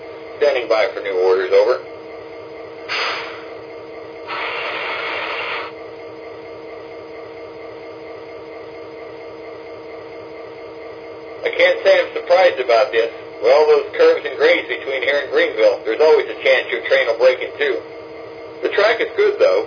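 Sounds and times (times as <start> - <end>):
F40PH diesel locomotive train: 0.0 - 1.9, 2.6 - 5.8, 10.4 - 17.9, 18.5 - 19.6.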